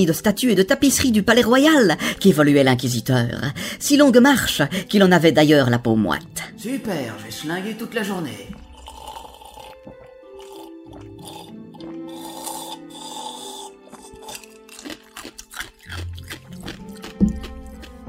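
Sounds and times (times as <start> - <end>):
speech: 0.0 - 8.6
crunching ice cubes: 8.6 - 18.0.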